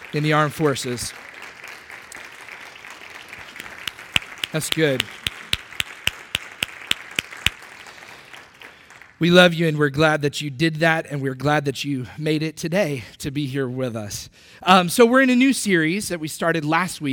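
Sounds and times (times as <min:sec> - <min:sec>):
audience applause: 0:00.0 - 0:09.2
speech: 0:00.1 - 0:01.2, 0:04.5 - 0:05.2, 0:09.2 - 0:17.1.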